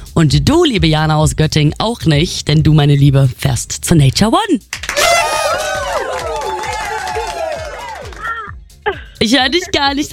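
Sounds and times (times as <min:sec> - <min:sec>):
speech: 0:00.2 - 0:05.0, 0:09.2 - 0:10.1
crowd cheering: 0:04.8 - 0:08.5.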